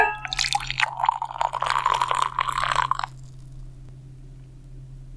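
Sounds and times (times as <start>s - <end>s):
tea poured from a bottle into a glass: 0.2s - 3.6s.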